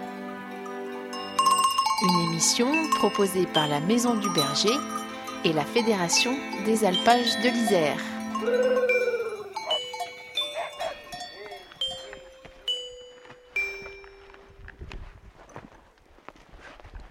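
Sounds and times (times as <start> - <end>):
livestock bells of grazing herd: 0.6 - 14.7
speech: 2.0 - 9.0.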